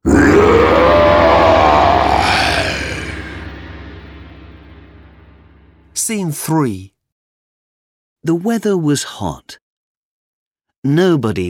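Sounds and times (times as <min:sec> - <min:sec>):
dragon roaring: 0:00.0 - 0:05.7
speech: 0:06.1 - 0:06.9, 0:08.2 - 0:09.6, 0:10.8 - 0:11.4.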